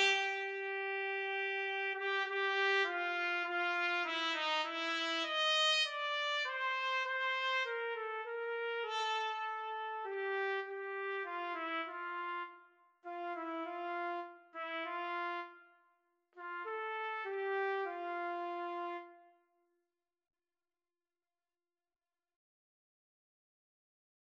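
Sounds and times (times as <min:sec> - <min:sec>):
trumpet and trombone duet: 0:00.0 - 0:12.5, 0:13.1 - 0:15.5, 0:16.4 - 0:19.1.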